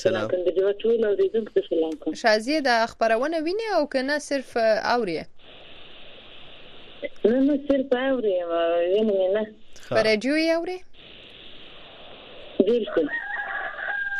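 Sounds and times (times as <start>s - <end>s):
speech: 0.0s - 5.6s, 7.0s - 11.1s, 12.6s - 13.2s
roosters crowing outdoors among chickens: 12.9s - 14.1s.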